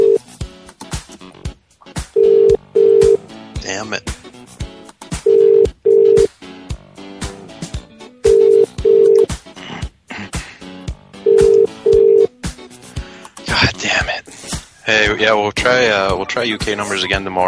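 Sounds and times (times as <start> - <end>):
telephone ringing: 0.0 - 0.2, 2.2 - 3.2, 5.3 - 6.3, 8.2 - 9.3, 11.2 - 12.3
speech: 3.7 - 4.2, 14.9 - 17.4.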